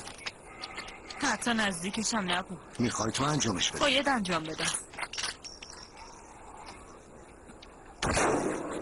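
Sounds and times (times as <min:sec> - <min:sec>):
speech: 0:01.3 - 0:04.8
gunfire: 0:08.0 - 0:08.8.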